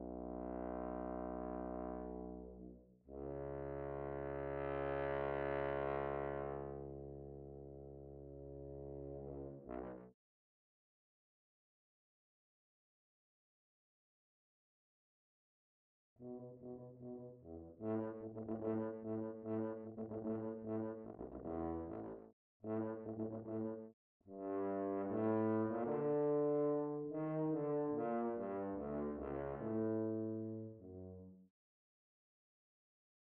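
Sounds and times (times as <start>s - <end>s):
tuba: 0.0s - 10.1s, 16.2s - 31.5s.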